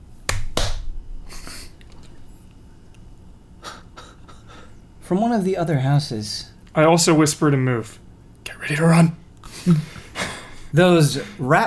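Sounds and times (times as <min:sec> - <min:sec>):
low hum: 0:00.0 - 0:11.6
sharp hand claps: 0:00.3 - 0:00.9
speech: 0:05.1 - 0:08.0, 0:08.6 - 0:09.9, 0:10.7 - 0:11.6.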